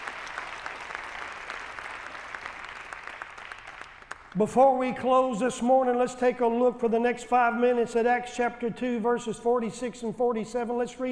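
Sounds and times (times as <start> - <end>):
audience hand clapping: 0.0 - 4.5
speech: 4.4 - 11.1.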